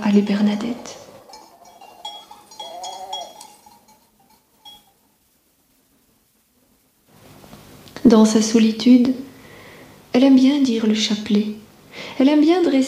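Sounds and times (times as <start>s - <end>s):
speech: 0.1s - 1.0s, 8.1s - 9.3s, 10.1s - 12.8s
sheep bleating: 1.3s - 3.9s.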